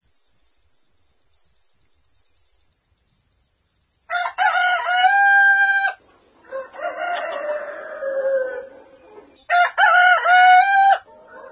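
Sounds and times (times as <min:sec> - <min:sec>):
rooster crowing: 0:04.1 - 0:11.5.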